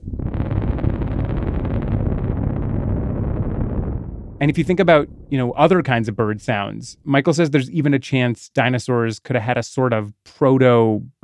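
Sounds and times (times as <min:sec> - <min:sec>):
low rumble from two tubas playing: 0:00.0 - 0:07.8
speech: 0:04.4 - 0:11.2.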